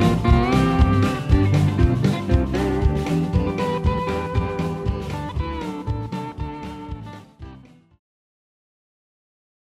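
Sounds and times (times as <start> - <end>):
blues song: 0.0 - 7.8.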